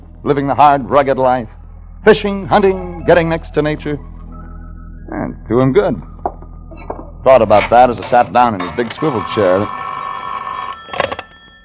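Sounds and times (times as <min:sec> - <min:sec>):
speech: 0:00.2 - 0:04.1, 0:05.1 - 0:06.1, 0:06.8 - 0:09.8
telephone bell ringing: 0:09.0 - 0:11.6.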